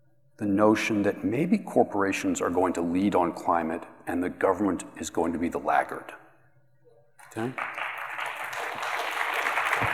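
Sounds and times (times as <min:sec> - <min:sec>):
speech: 0:00.4 - 0:06.2, 0:07.3 - 0:07.8
audience applause: 0:07.3 - 0:09.9.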